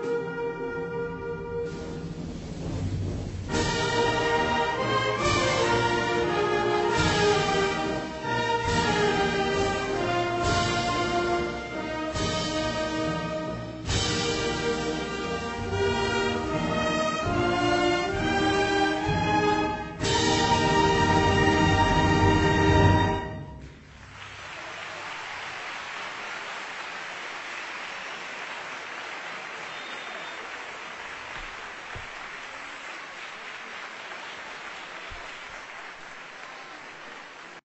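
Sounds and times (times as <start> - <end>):
anthem played as a march: 0.0 - 23.8.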